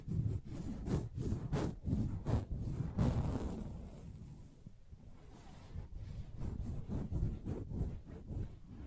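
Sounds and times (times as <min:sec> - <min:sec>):
soft fabric surface tapping and scratching: 0:00.0 - 0:04.1, 0:05.8 - 0:08.6.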